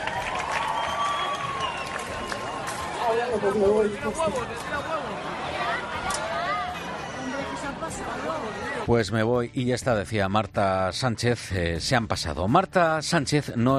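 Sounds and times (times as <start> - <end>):
concert crowd applauding and cheering: 0.0 - 7.8
speech: 3.1 - 6.1, 7.8 - 13.7.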